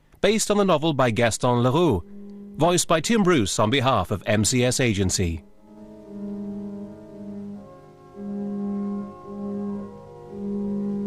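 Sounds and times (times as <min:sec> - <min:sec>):
speech: 0:00.2 - 0:05.5
mournful organ tones in a deserted auditorium: 0:01.5 - 0:03.7, 0:04.6 - 0:11.0.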